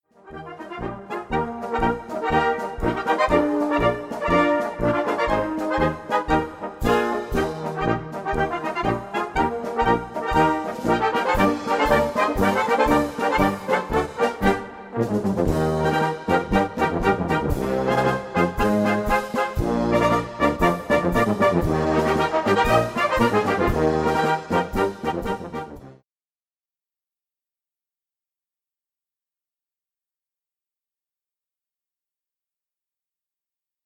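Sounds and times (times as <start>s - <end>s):
march music: 0.1s - 26.0s.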